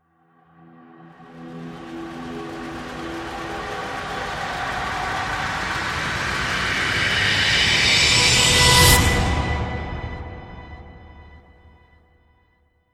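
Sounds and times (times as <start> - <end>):
interstellar riser sound effects: 1.2 - 10.4.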